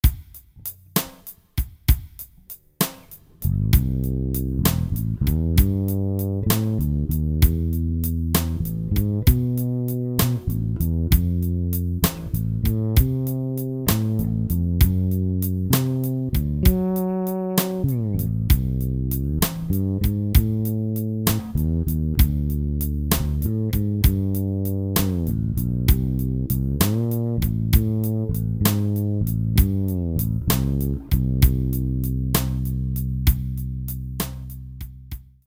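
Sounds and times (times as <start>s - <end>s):
blues music: 0.0s - 35.4s.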